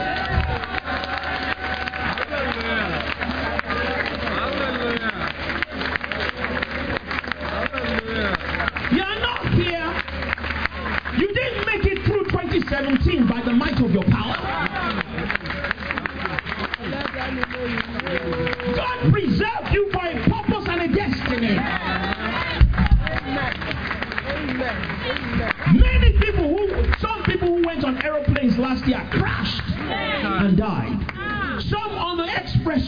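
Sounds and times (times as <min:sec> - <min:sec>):
audience clapping hands: 0:00.0 - 0:32.8.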